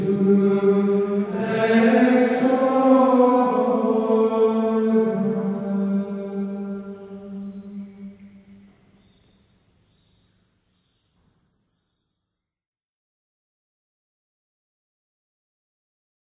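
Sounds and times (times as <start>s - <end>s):
choir chanting an antiphon at Compline: 0.0s - 8.5s.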